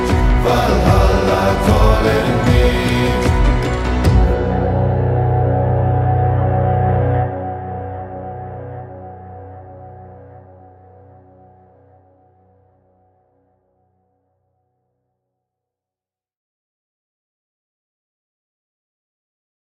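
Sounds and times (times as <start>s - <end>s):
Viking Nordic style music: 0.0s - 12.4s.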